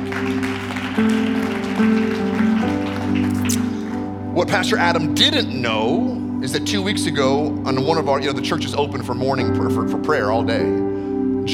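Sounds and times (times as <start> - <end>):
crowd clapping: 0.0 - 4.6
organ or keyboard chords: 0.0 - 11.5
speech: 4.4 - 10.8.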